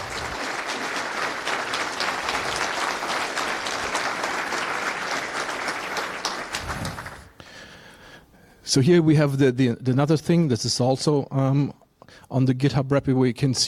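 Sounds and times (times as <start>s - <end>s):
audience round of applause: 0.0s - 7.4s
speech: 8.7s - 13.6s.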